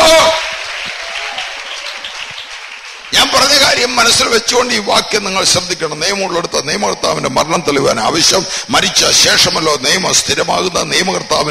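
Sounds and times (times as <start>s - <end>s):
congregation clapping hands in praise of God during a church service: 0.0s - 5.1s
speech: 4.0s - 11.4s.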